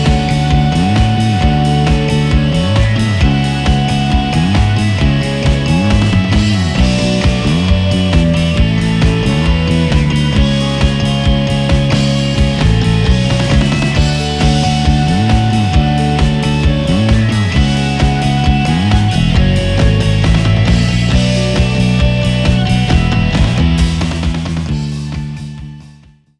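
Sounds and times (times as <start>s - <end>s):
Alusonic Custom Shop JSP DX 4 bass guitar played with fingers: 0.0s - 26.1s.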